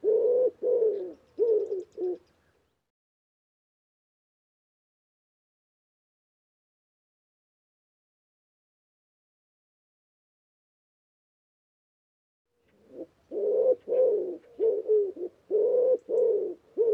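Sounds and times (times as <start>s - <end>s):
bird giving low soft cooing notes: 0.0s - 2.5s, 12.6s - 16.9s.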